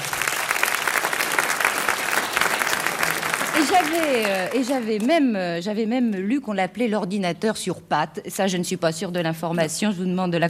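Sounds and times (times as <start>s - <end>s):
audience applause: 0.0s - 5.1s
speech: 3.6s - 10.4s.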